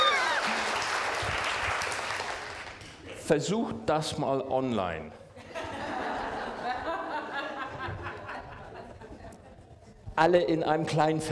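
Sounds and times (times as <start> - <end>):
audience applause: 0.0 - 3.0
speech: 3.3 - 5.2, 10.2 - 11.3
laughter: 5.2 - 10.0.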